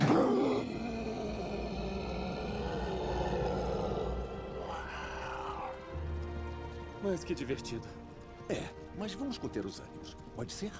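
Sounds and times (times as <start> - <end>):
voice growling with excitement imitating an animal: 0.0 - 5.9
speech: 7.0 - 10.7.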